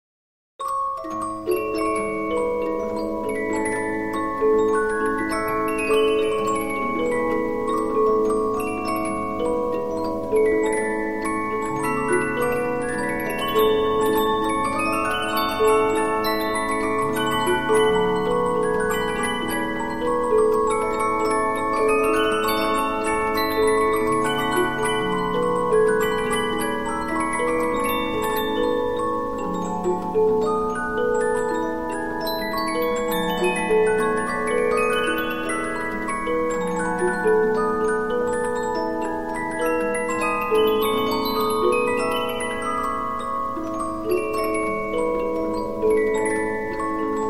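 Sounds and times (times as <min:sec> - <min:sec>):
Polyphon 15-inch disc music box playing: 0:00.6 - 0:47.2.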